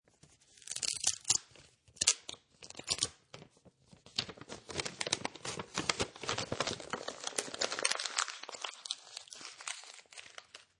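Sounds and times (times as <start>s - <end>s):
paper envelope opening carefully: 0.5s - 10.7s
paper crunch: 4.0s - 10.7s.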